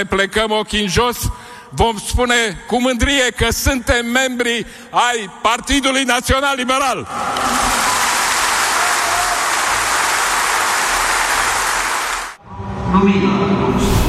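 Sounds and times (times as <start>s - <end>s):
speech: 0.0s - 7.6s, 12.9s - 14.0s
congress audience applause: 7.1s - 12.4s.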